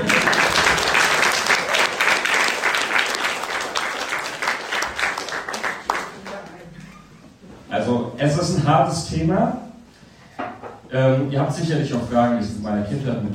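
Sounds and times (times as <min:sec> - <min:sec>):
audience applause: 0:00.0 - 0:06.6
speech: 0:08.7 - 0:09.7, 0:10.9 - 0:13.3.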